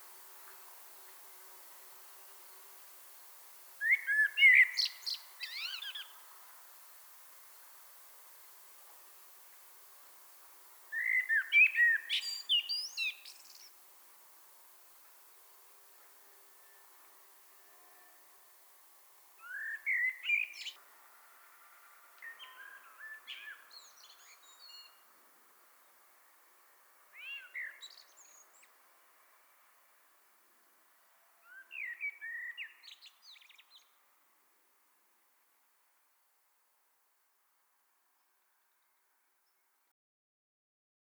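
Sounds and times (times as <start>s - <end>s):
common blackbird singing mellow warbles: 1.9s - 14.2s, 19.4s - 20.8s, 21.8s - 26.0s, 27.0s - 29.5s, 31.4s - 34.0s.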